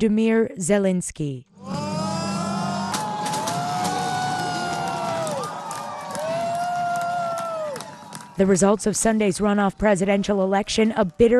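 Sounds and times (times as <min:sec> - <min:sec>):
speech: 0:00.0 - 0:01.8, 0:08.4 - 0:11.3
scattered shouts and whoops: 0:01.6 - 0:08.4
supporters cheering at Ukrainian election exit polls: 0:01.6 - 0:10.2.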